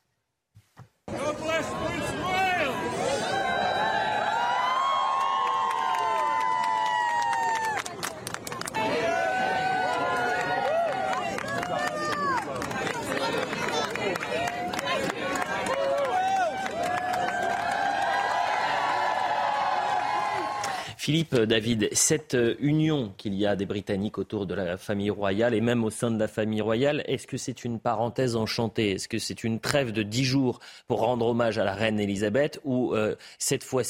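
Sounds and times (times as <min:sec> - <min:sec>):
large crowd cheering during royal walkabout: 0:01.1 - 0:07.9, 0:08.7 - 0:20.8
scattered sharp claps and clicks: 0:10.2 - 0:18.0
speech: 0:21.1 - 0:33.8.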